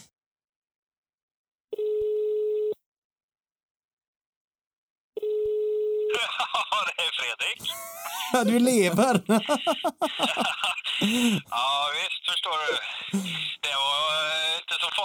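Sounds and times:
phone line ringing tone: 0:01.7 - 0:02.7, 0:05.2 - 0:06.3
speech: 0:07.2 - 0:15.0
laughter: 0:07.6 - 0:11.7, 0:12.9 - 0:13.6.

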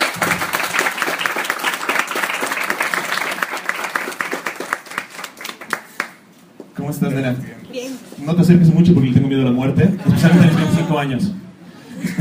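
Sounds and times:
audience applause at a comic convention talk: 0:00.0 - 0:06.2
speech: 0:06.9 - 0:07.6, 0:08.2 - 0:11.4
laughter: 0:10.0 - 0:11.1, 0:11.9 - 0:12.1.

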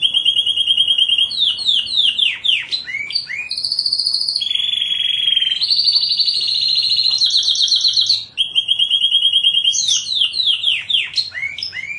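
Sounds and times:
champion canary singing fast trills and rattling tours: 0:00.0 - 0:11.9.

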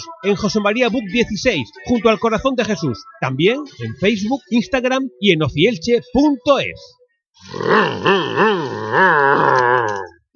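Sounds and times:
speech: 0:00.0 - 0:10.1
voice imitating a car engine revving: 0:07.5 - 0:10.1.

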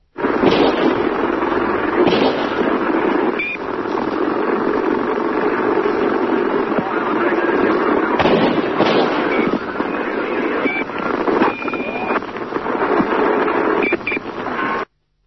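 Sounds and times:
Dallas police motorcycle engine drone: 0:00.0 - 0:14.9
static on a Dallas police motorcycle radio: 0:00.0 - 0:14.9
gunshot cracks on a Dallas police motorcycle radio recording: 0:00.2 - 0:13.8.

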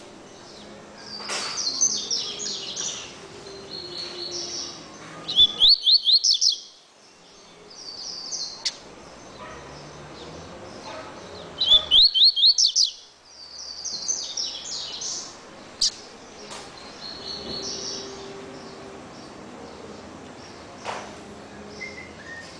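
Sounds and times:
double-collared seedeater song: 0:00.0 - 0:22.5.

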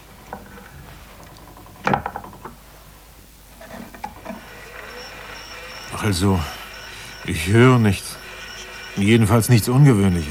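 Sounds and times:
switched-on telegraph ticking and humming: 0:04.1 - 0:10.2
speech: 0:06.0 - 0:06.6, 0:07.2 - 0:08.2, 0:09.0 - 0:10.2.

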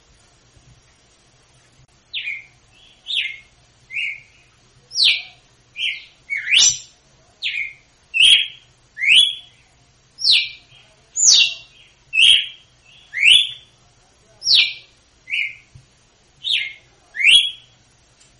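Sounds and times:
female red-cowled cardinal singing in Northeast Brazil style: 0:02.1 - 0:09.6, 0:10.2 - 0:13.7, 0:14.4 - 0:15.7, 0:16.4 - 0:17.8.

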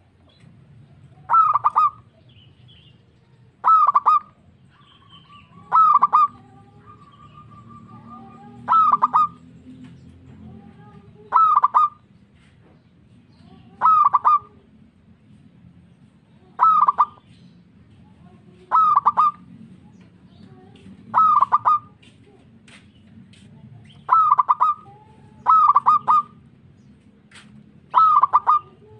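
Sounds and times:
zebra dove cooing: 0:01.1 - 0:02.1, 0:03.6 - 0:09.5, 0:10.4 - 0:12.0, 0:13.7 - 0:14.7, 0:16.5 - 0:17.2, 0:18.5 - 0:19.5, 0:21.1 - 0:22.1, 0:24.0 - 0:26.4, 0:27.9 - 0:28.9.

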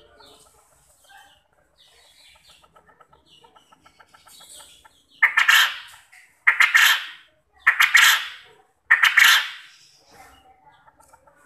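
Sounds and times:
quail calling: 0:02.0 - 0:09.9.

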